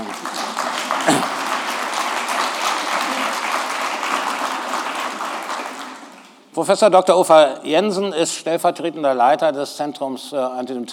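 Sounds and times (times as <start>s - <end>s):
audience applause at an academic lecture event: 0.0s - 6.4s
speech: 1.0s - 1.3s, 6.6s - 10.9s.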